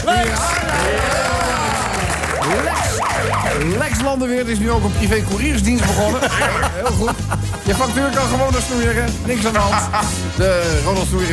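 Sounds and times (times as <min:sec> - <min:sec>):
laughter: 0:00.0 - 0:02.9, 0:05.7 - 0:08.6, 0:09.2 - 0:10.4
audience applause: 0:00.0 - 0:04.0
speech: 0:03.6 - 0:11.3.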